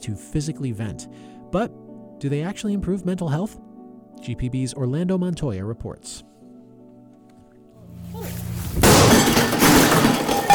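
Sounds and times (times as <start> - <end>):
speech: 0.0 - 6.3
glass smashed in a rage room: 8.0 - 10.5.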